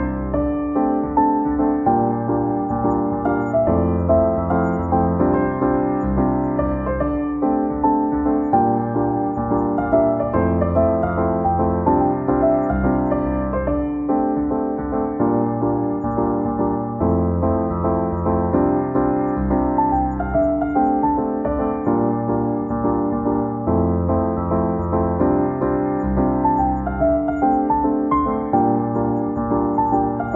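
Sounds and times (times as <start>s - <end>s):
jazzy pop piano: 0.0s - 30.3s.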